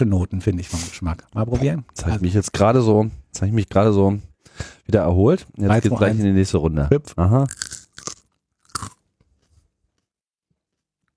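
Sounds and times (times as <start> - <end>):
speech: 0.0 - 7.8
crunchy chewing of a hot chili pepper: 7.5 - 9.5.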